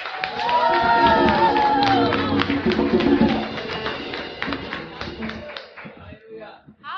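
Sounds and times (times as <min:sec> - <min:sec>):
warm audience applause: 0:00.0 - 0:06.1.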